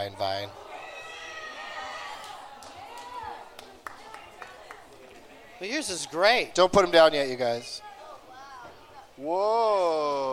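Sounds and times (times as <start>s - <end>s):
speech: 0.0s - 0.7s, 5.6s - 7.9s, 9.2s - 10.3s
audience cheering: 0.4s - 6.2s.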